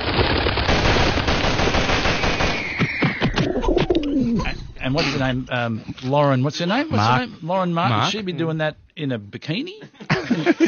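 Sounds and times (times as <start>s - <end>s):
barrage of gunfire from simulated live pigeon shooting: 0.0s - 3.5s
sharp gunshots from simulated live pigeon shooting: 0.4s - 3.5s
pigeon-like cooing and bird calls: 3.0s - 4.4s
speech: 5.0s - 10.6s
laughter: 9.8s - 10.6s.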